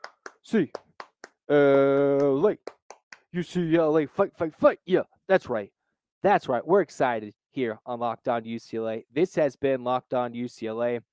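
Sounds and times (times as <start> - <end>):
rhythmic eight-count clapping: 0.0 - 3.4
speech: 0.4 - 0.8, 1.5 - 11.1.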